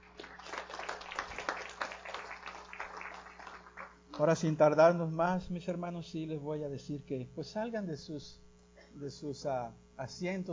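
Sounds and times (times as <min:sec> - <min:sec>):
audience applauding: 0:00.0 - 0:04.4
speech: 0:04.2 - 0:08.4, 0:09.0 - 0:10.5.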